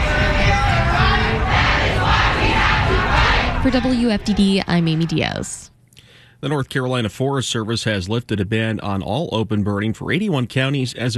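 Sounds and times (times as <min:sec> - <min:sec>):
marching protest crowd chanting: 0:00.0 - 0:05.6
speech: 0:03.6 - 0:05.7, 0:06.4 - 0:11.1.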